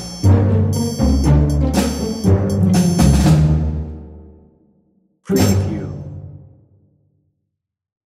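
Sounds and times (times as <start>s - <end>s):
cartoon adventure bass percussion: 0.0s - 4.3s, 5.3s - 6.3s.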